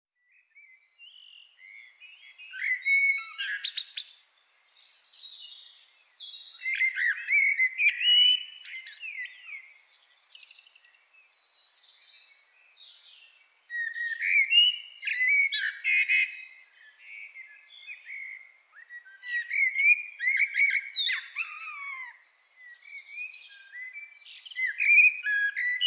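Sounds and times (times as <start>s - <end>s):
common blackbird song: 0.2s - 25.8s.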